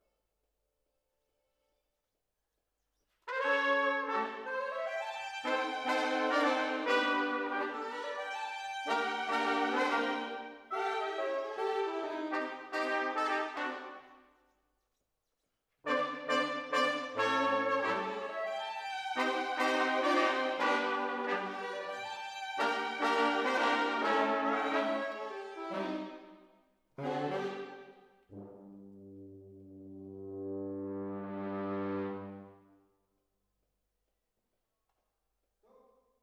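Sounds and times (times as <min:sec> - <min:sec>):
horns playing: 0:03.3 - 0:14.1, 0:15.9 - 0:26.2, 0:27.0 - 0:28.8, 0:30.2 - 0:32.6.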